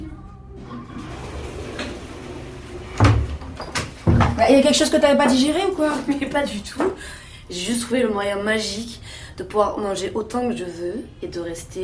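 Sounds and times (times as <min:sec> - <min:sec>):
wooden door clunk as it swings: 0:02.9 - 0:04.5
speech: 0:04.4 - 0:11.8.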